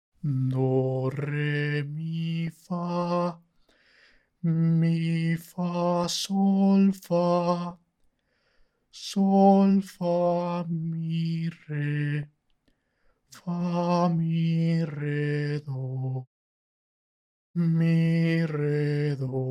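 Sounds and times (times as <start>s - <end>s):
singing voice: 0.2s - 3.5s, 4.4s - 7.9s, 8.9s - 12.4s, 13.3s - 16.3s, 17.6s - 19.4s.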